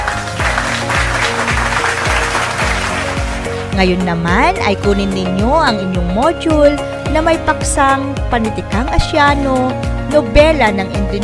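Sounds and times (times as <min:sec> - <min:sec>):
students clapping at the start of a lesson: 0:00.0 - 0:03.7
speech: 0:03.8 - 0:11.2.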